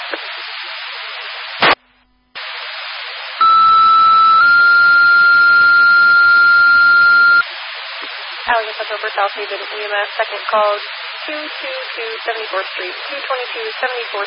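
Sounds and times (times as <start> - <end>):
radio static: 0.0 - 7.4, 8.0 - 14.2
electronic beep: 3.4 - 7.4
emergency dispatch paging tones for a medical and gas call: 3.4 - 7.4
speech: 9.1 - 14.2.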